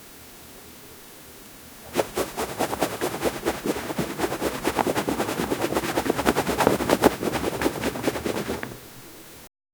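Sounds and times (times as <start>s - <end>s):
leather being shaken: 1.8s - 9.4s.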